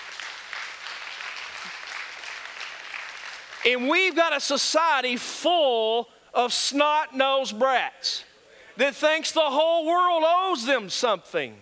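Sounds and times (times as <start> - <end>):
audience clapping: 0.0 - 4.2
speech: 3.6 - 11.6.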